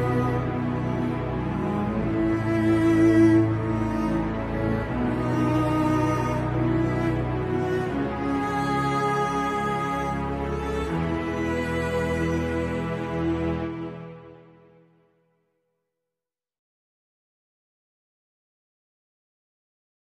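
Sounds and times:
tormented instrumental music: 0.0s - 15.1s.

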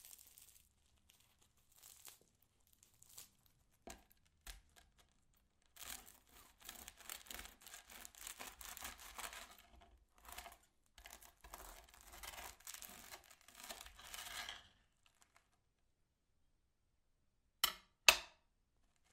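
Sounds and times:
cutting bread: 2.8s - 14.7s.

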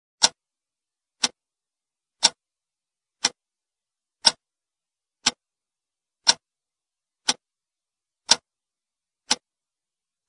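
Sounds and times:
clock ticking: 0.2s - 0.4s, 1.2s - 1.4s, 2.2s - 2.4s, 3.2s - 3.4s, 4.2s - 4.4s, 5.2s - 5.4s, 6.2s - 6.5s, 7.2s - 7.4s, 8.2s - 8.5s, 9.2s - 9.5s.

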